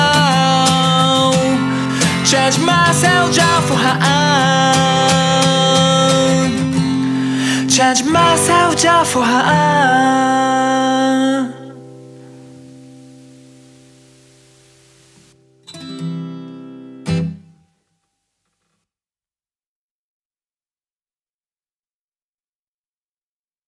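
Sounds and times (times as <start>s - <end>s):
acoustic version of a song: 0.0s - 17.6s.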